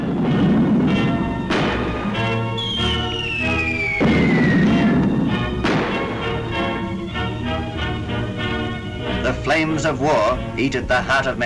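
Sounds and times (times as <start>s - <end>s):
air raid bombs exploding: 0.0s - 8.3s
speech: 9.6s - 11.4s.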